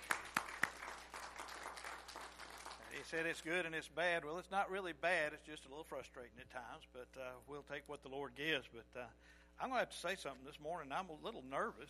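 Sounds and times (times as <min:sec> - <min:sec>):
audience clapping: 0:00.0 - 0:03.2
speech: 0:03.0 - 0:11.8.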